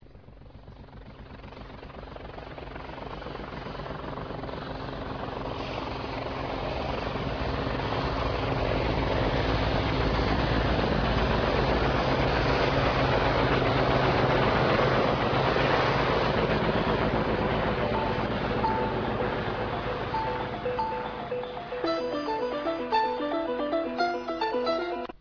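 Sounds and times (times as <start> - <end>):
helicopter: 0.0 - 24.0.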